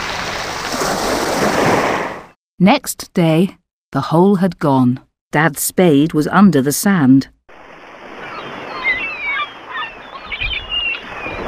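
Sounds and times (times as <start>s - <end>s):
ocean waves washing in as the tide comes in: 0.0s - 2.3s, 7.5s - 11.4s
speech: 2.6s - 7.4s.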